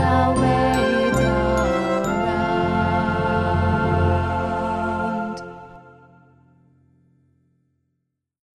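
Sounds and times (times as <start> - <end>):
tenor singing: 0.0 - 6.0.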